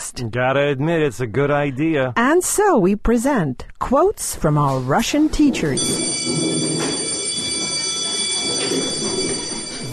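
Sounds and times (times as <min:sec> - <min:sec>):
speech: 0:00.1 - 0:06.3
school bell ringing for recess: 0:05.8 - 0:09.9.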